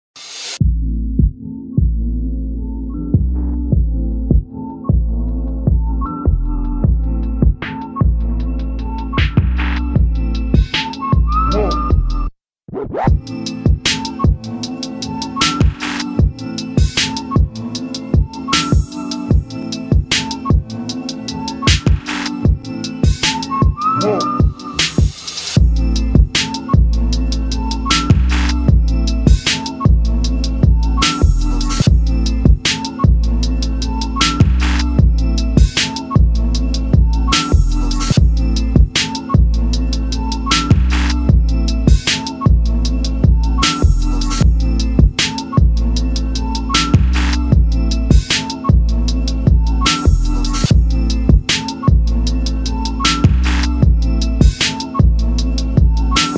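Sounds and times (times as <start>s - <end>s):
instrumental music: 0.4s - 56.3s.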